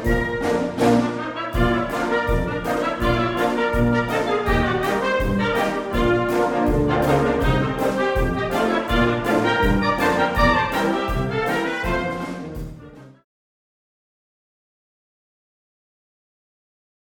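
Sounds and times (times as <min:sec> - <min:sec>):
old ragtime jazz music: 0:00.0 - 0:13.2.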